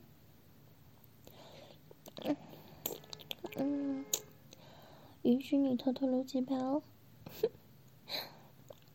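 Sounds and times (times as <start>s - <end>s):
wet licking and slurping: 2.1s - 3.5s
speech: 5.5s - 8.3s.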